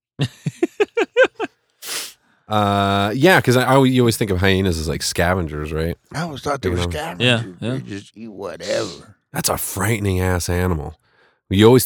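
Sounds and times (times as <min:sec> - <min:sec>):
speech: 0:00.2 - 0:00.4, 0:02.5 - 0:11.8
laughter: 0:00.2 - 0:01.5, 0:02.5 - 0:04.1
person sneezing: 0:01.8 - 0:03.1.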